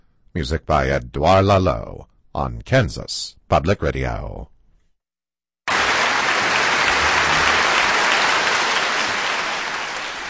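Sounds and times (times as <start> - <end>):
speech: 0.4 - 4.5
concert audience applause: 5.7 - 10.2.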